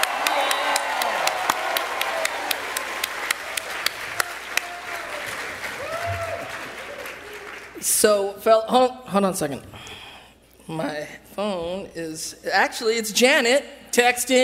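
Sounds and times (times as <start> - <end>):
faint cheers or voices: 0.0 - 7.7
audience applauding: 0.0 - 7.8
speech: 8.0 - 9.7, 10.7 - 14.4.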